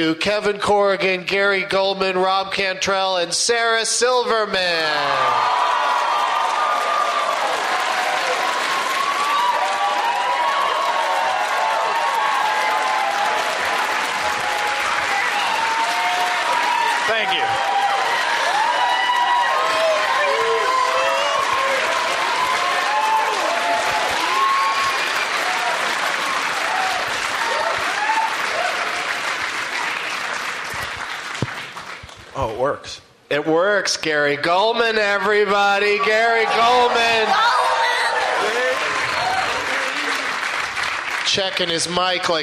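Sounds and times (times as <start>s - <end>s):
speech: 0.0s - 5.9s, 32.5s - 37.7s, 41.3s - 42.4s
studio audience whooping and shouting: 4.8s - 30.4s, 35.8s - 40.4s
studio audience clapping to welcome guests: 5.1s - 32.4s, 36.2s - 42.4s.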